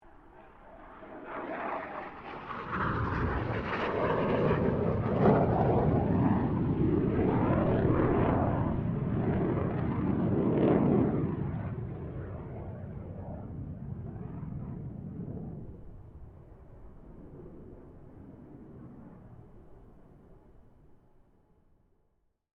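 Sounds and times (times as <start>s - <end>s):
1997 BAE Hawk 127 jet passing: 0.0s - 20.4s.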